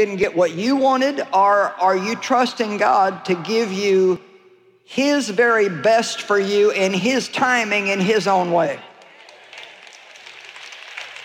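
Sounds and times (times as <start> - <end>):
speech: 0.0 - 4.3, 4.9 - 8.9
audience clapping: 8.8 - 11.2.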